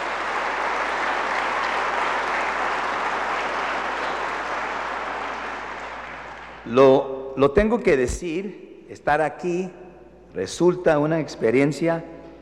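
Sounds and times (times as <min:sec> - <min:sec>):
audience applause: 0:00.0 - 0:06.7
speech: 0:06.6 - 0:12.1.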